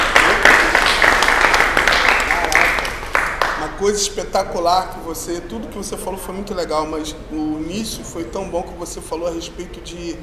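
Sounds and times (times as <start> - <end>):
applause: 0.0 - 3.8
speech: 3.8 - 10.2.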